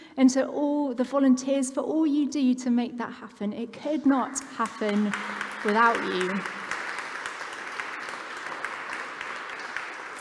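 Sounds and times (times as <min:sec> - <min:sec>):
speech: 0:00.2 - 0:06.6
audience applause: 0:04.8 - 0:10.2.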